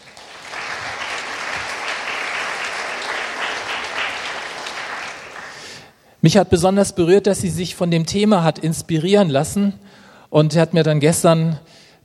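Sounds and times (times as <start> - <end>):
audience applause: 0.0 - 5.9
speech: 6.2 - 12.0.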